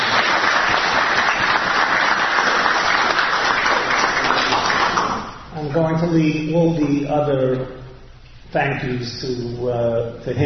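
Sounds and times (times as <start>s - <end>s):
round of applause: 0.0s - 5.4s
speech: 5.8s - 7.8s, 8.5s - 10.4s.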